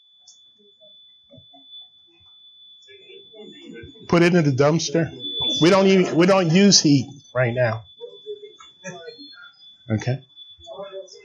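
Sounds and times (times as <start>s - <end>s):
carbon monoxide alarm steady high-pitched electronic tone: 0.0s - 11.2s
murmured voices: 2.9s - 11.2s
speech: 3.4s - 7.9s, 9.9s - 10.3s.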